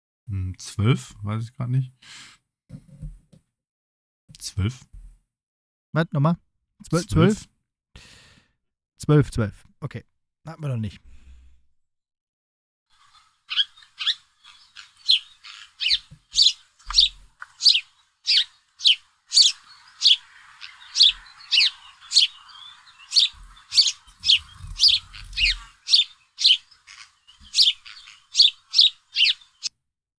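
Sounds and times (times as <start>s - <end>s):
speech: 0.3s - 3.1s, 4.4s - 4.9s, 6.0s - 8.2s, 9.0s - 11.1s
sparrow chirping: 13.0s - 29.7s.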